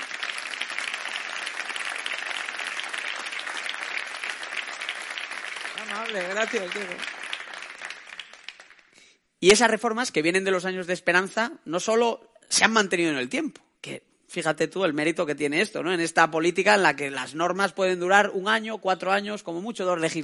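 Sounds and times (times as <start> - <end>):
audience applause: 0.0 - 9.0
speech: 6.0 - 7.2, 9.4 - 20.2.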